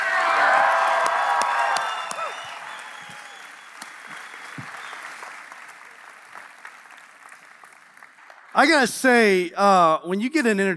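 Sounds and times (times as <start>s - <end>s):
audience cheering: 0.0s - 7.8s
audience applauding to welcome a pastor: 0.0s - 9.3s
speech: 8.6s - 10.7s.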